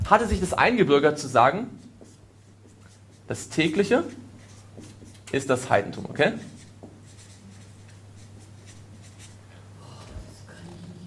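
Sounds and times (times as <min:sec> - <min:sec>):
speech: 0:00.1 - 0:01.8, 0:03.3 - 0:04.2, 0:04.8 - 0:06.6
scratchy writing strokes: 0:01.1 - 0:09.5.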